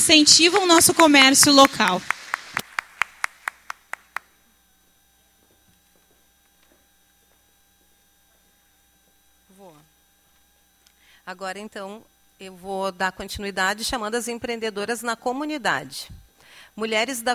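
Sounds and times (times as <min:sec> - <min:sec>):
speech: 0:00.0 - 0:02.2, 0:11.3 - 0:16.2, 0:16.8 - 0:17.3
audience applause: 0:00.0 - 0:04.3.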